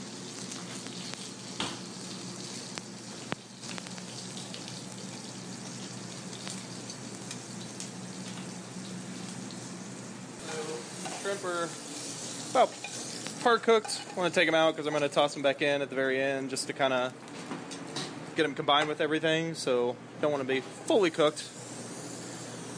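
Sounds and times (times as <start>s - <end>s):
blanched seasoned potatoes searing on a plancha: 0.0s - 14.6s
speech: 11.4s - 11.8s, 12.6s - 12.8s, 13.4s - 17.3s, 18.4s - 21.6s.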